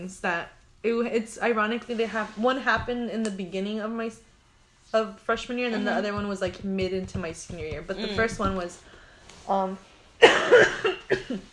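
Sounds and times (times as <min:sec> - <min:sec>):
speech: 0:00.0 - 0:04.3, 0:04.9 - 0:08.9, 0:09.5 - 0:11.5
sick person coughing harshly: 0:10.2 - 0:11.5.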